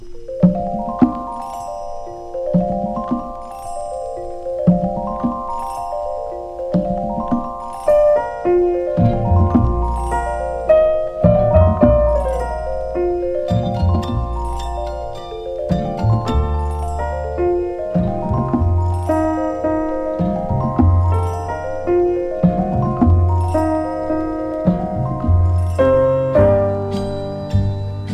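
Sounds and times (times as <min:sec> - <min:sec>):
carnival percussion: 0:00.0 - 0:28.1.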